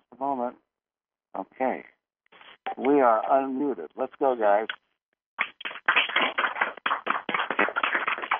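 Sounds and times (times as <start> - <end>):
speech: 2.8 - 4.8
callers clapping over phone lines: 5.4 - 8.3.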